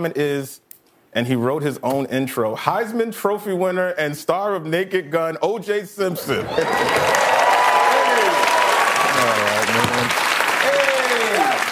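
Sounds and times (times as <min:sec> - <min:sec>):
speech: 0:00.0 - 0:00.6, 0:01.2 - 0:07.4
voices cheering: 0:06.2 - 0:11.6
audience applause: 0:06.3 - 0:11.6.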